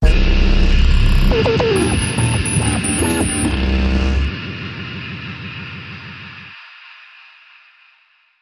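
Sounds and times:
dubcore stinger: 0.0s - 6.6s.

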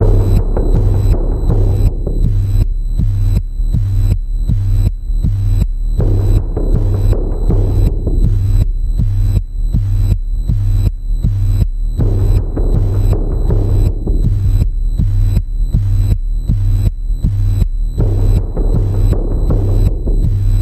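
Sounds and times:
panning pulse tone in the key of G: 0.0s - 20.5s.

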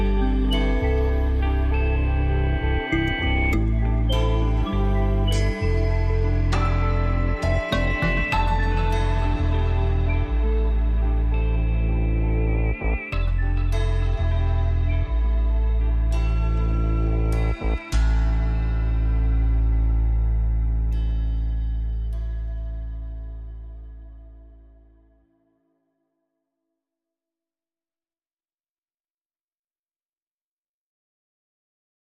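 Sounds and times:
music without drums: 0.0s - 25.0s.

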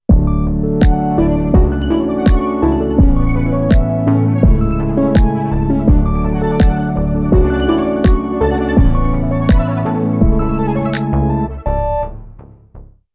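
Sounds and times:
music bed: 0.1s - 12.6s.

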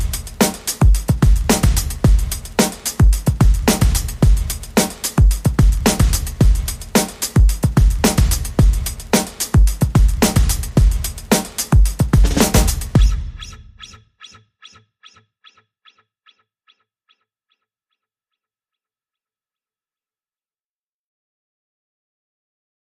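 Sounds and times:
music beat: 0.0s - 15.2s.

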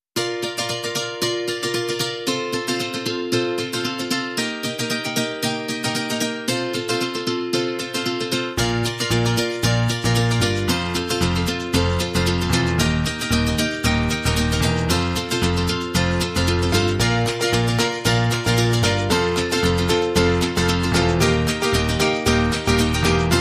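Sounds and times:
instrumental music: 0.2s - 23.3s.

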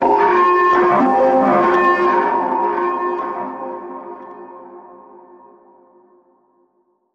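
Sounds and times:
outpost alarm: 0.0s - 5.7s.

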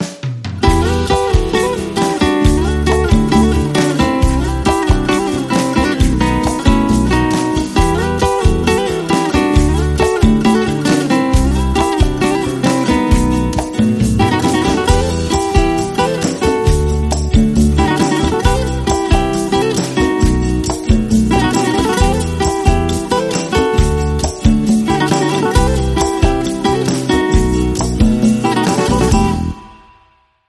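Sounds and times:
Spanish guitar: 0.6s - 30.1s.

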